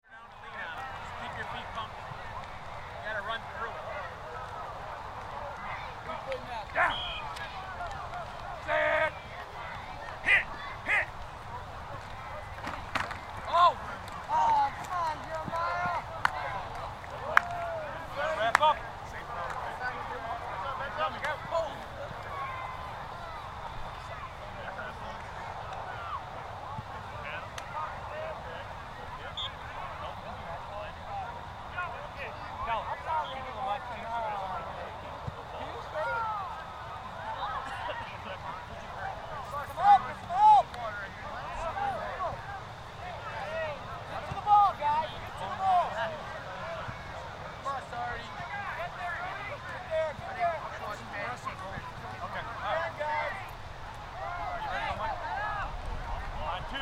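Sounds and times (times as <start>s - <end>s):
high school football practice ambience: 0.0s - 56.7s.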